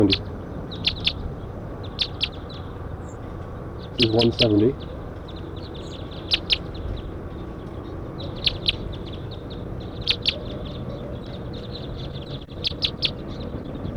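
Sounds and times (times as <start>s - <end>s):
speech: 0.0s - 1.0s, 4.0s - 4.9s
flocks of wild birds calling: 0.0s - 13.9s.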